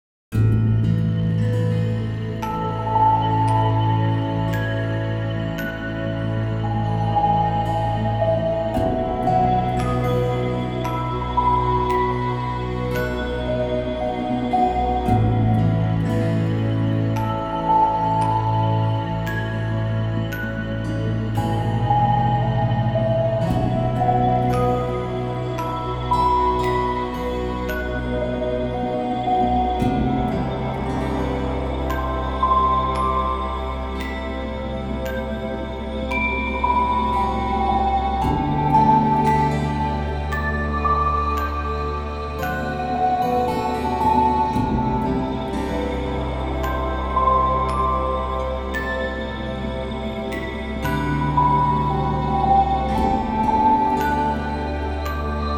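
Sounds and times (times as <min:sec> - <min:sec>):
healing music: 0:00.3 - 0:55.5.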